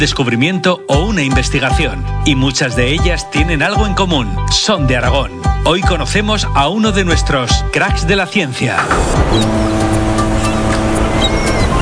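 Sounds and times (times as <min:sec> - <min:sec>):
speech: 0:00.0 - 0:10.2
low engine drone like a motorboat: 0:09.0 - 0:11.8
faint high-pitched chirps: 0:09.3 - 0:11.8.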